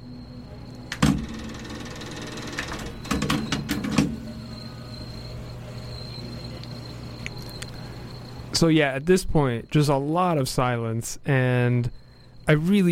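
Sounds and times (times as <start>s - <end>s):
low hum: 0.0s - 10.1s
faint cassette tape player hiss: 0.0s - 12.9s
speech: 8.6s - 12.9s.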